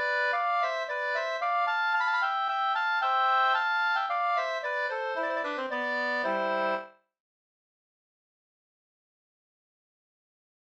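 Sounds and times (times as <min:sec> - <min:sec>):
slängpolska folk dance tune: 0:00.0 - 0:06.9.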